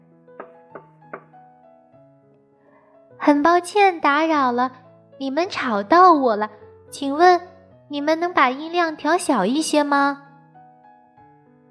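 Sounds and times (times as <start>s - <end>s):
knocking on a door: 0.4s - 1.4s
speech: 3.2s - 10.2s.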